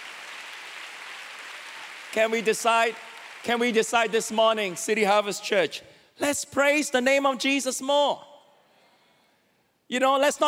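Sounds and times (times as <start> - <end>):
audience clapping: 0.0 - 4.7
speech: 2.1 - 8.3, 9.9 - 10.4.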